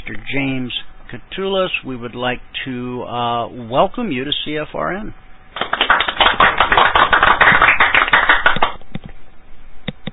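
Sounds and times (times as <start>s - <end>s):
speech: 0.1s - 5.2s
smattering of applause: 5.5s - 8.8s.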